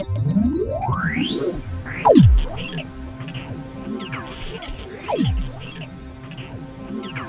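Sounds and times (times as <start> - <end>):
bass: 0.0 - 7.2
synth line: 1.8 - 7.1.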